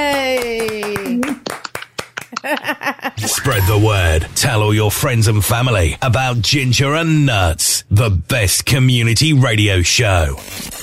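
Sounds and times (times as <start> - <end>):
small group clapping: 0.0 - 2.8
speech: 2.4 - 10.8.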